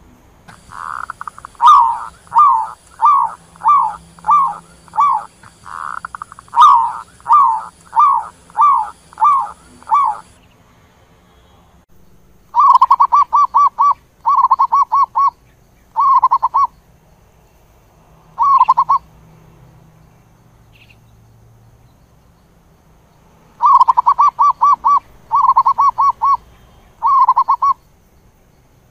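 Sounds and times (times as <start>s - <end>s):
zebra dove cooing: 0.5s - 10.4s, 12.6s - 15.3s, 16.0s - 16.7s, 18.4s - 19.0s, 23.6s - 26.4s, 27.0s - 27.8s.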